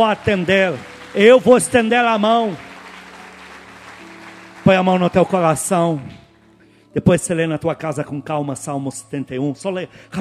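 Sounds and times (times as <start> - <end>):
speech: 0.0 - 2.7, 4.7 - 6.2, 6.9 - 10.1
audience applause: 0.0 - 6.2.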